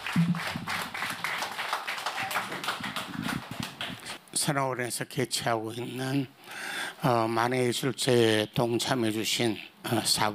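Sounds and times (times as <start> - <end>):
audience applause for speaker: 0.0 - 4.2
speech: 0.2 - 0.6, 4.4 - 6.4, 7.0 - 10.3.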